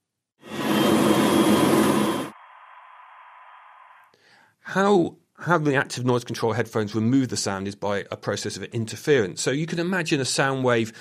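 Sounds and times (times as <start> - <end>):
loud steady machinery roar with a deep rumble: 0.4 - 2.4
speech: 4.7 - 11.0.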